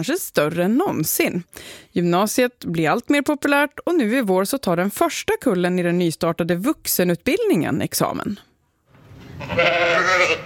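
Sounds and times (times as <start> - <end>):
speech: 0.0 - 8.5, 9.4 - 10.4
sheep bleating at an agricultural school: 9.4 - 10.4.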